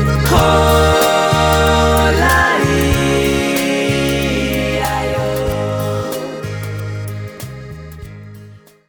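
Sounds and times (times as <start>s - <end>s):
yodeling: 0.2s - 7.2s.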